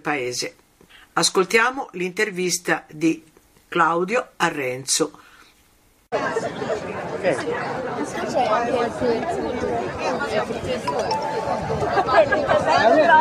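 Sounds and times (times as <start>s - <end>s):
speech: 0.0s - 0.6s, 1.2s - 5.3s, 6.1s - 13.1s
crowd chatter in a city square: 6.2s - 13.1s.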